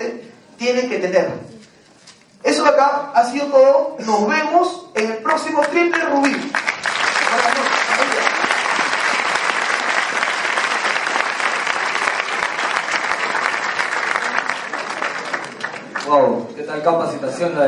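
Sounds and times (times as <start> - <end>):
speech: 0.6 - 1.5, 2.6 - 6.7, 16.1 - 17.6
audience applause: 5.3 - 16.3.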